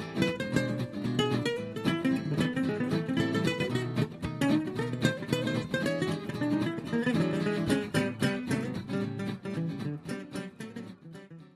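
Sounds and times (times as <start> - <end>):
jazz manouche music: 0.0 - 11.4.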